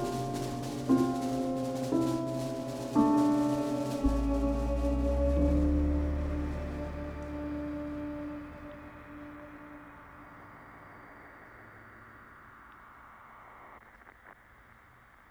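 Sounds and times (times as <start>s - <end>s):
tango music: 0.0s - 10.0s.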